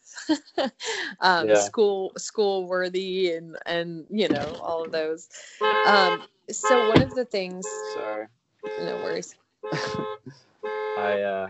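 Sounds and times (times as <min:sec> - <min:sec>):
laughter: 0:00.2 - 0:01.7, 0:08.8 - 0:10.2, 0:11.0 - 0:11.4
speech: 0:00.3 - 0:11.4
van horn honking: 0:05.6 - 0:11.4.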